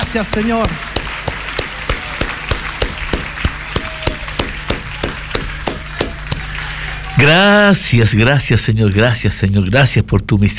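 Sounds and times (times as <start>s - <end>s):
audience applause: 0.0s - 7.4s
speech: 0.1s - 0.9s, 7.2s - 10.5s
low hum: 0.7s - 7.9s.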